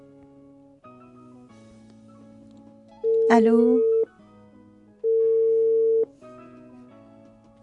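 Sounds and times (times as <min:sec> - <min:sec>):
telephone busy tone after a call is disconnected: 0:03.0 - 0:04.1, 0:05.0 - 0:06.1
speech: 0:03.3 - 0:03.9.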